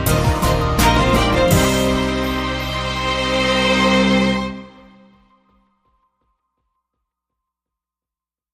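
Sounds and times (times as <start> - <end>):
big beat: 0.0 - 5.6.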